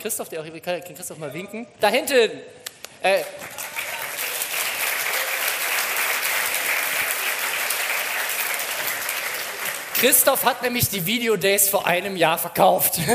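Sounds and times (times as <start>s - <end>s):
speech: 0.0s - 3.8s, 10.0s - 13.1s
audience applause: 3.4s - 10.7s.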